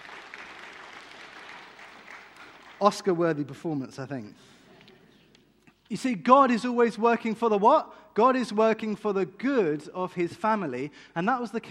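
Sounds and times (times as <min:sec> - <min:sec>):
audience applause at a church family gathering: 0:00.0 - 0:03.2
speech: 0:02.8 - 0:04.6, 0:05.9 - 0:11.6.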